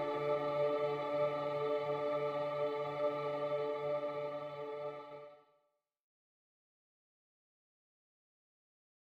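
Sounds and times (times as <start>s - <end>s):
MIDI tenor voices: 0.0s - 5.2s.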